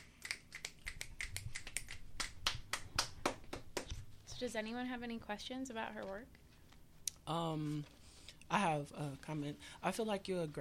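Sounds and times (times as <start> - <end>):
audience finger snapping after a poem reading: 0.2 - 3.9
speech: 4.4 - 6.4, 7.2 - 10.5.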